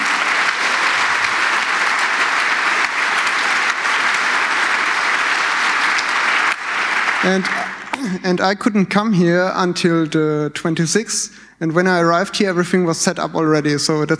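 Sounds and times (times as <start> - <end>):
audience applause: 0.0 - 8.6
speech: 7.2 - 14.1.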